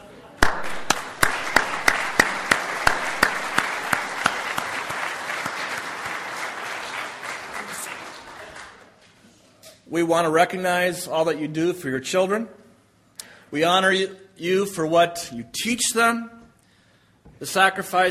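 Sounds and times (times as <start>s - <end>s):
audience applause: 0.4s - 8.9s
speech: 9.9s - 12.6s, 13.5s - 16.4s, 17.4s - 18.0s.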